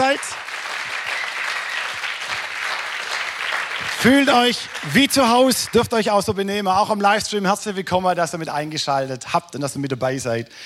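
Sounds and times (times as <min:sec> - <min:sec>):
audience applause: 0:00.0 - 0:06.2
speech: 0:00.2 - 0:00.5, 0:04.0 - 0:10.6.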